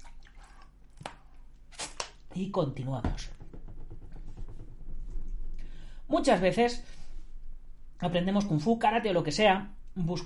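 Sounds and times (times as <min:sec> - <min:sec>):
person sipping a drink: 0:00.0 - 0:02.2
speech: 0:02.4 - 0:03.4, 0:06.1 - 0:07.0, 0:08.0 - 0:10.2.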